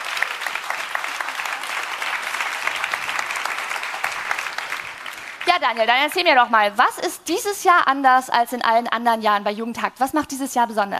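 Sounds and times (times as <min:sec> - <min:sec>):
audience applause: 0:00.0 - 0:06.3
speech: 0:05.5 - 0:10.9.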